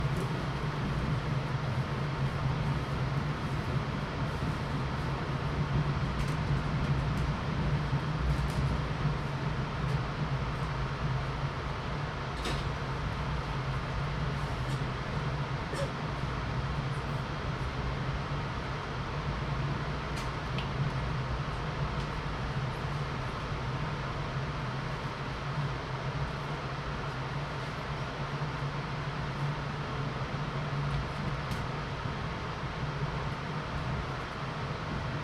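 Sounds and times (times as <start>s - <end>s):
empty Metro North passenger train ride interior: 0.0s - 35.2s.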